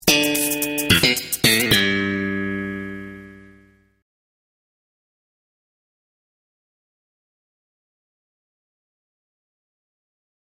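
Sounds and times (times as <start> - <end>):
sitcom bass riff: 0.0 - 3.8.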